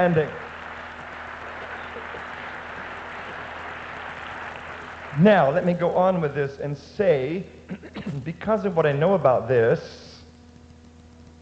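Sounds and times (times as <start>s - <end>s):
speech: 0.0s - 0.4s, 5.2s - 10.0s
audience applauding: 0.0s - 6.2s
low hum: 0.0s - 11.3s.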